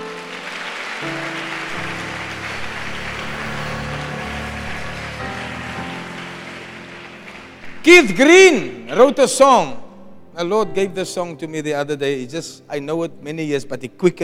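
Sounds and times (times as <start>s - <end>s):
crowd clapping: 0.0s - 8.7s
keyboard or organ chords: 0.0s - 13.2s
speech: 1.0s - 1.3s, 7.8s - 9.8s, 10.4s - 14.2s.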